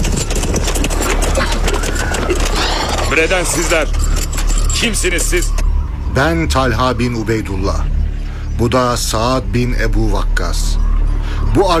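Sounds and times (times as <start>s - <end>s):
hooves of approaching horses with riders in a dramatized scene: 0.0s - 5.6s
speech: 3.2s - 4.1s, 4.8s - 5.6s, 6.2s - 8.0s, 8.6s - 10.8s, 11.6s - 11.7s.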